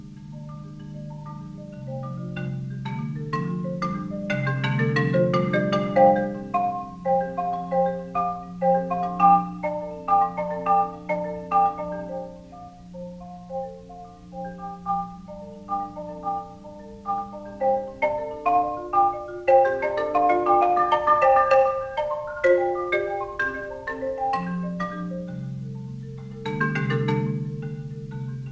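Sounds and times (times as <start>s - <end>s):
marimba solo: 0.0s - 28.5s.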